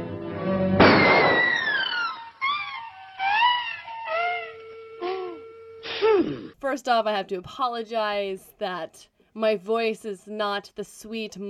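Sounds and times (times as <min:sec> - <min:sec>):
cartoon shotgun blast: 0:00.7 - 0:03.7
sliding warbling whistle tones: 0:01.0 - 0:05.8
speech: 0:06.7 - 0:11.4.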